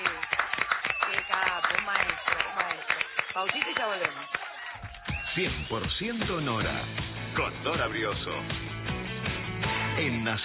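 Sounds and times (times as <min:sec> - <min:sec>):
crowd clapping: 0:00.0 - 0:06.1
speech: 0:03.4 - 0:04.3, 0:05.4 - 0:09.0, 0:10.0 - 0:10.4.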